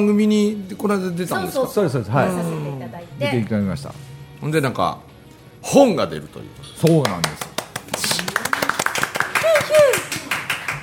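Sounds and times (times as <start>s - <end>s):
speech: 0.0s - 8.0s
hand clapping: 6.7s - 10.8s.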